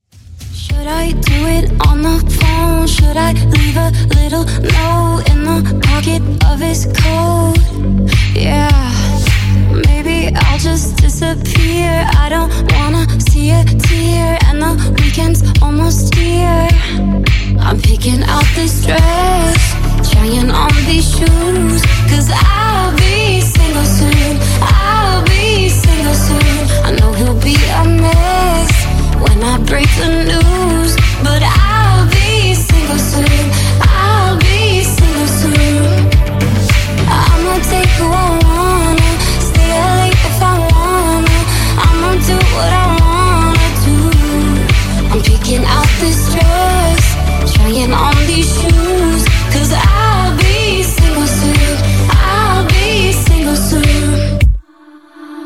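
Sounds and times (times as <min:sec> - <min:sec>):
DJ intro and outro music at 105 BPM: 0:00.2 - 0:54.6.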